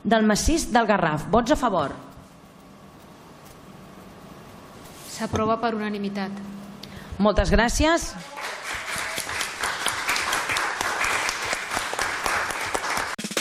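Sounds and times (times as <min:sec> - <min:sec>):
speech: 0:00.0 - 0:02.0, 0:05.2 - 0:06.6, 0:07.2 - 0:08.4
council chamber applause: 0:08.2 - 0:13.3.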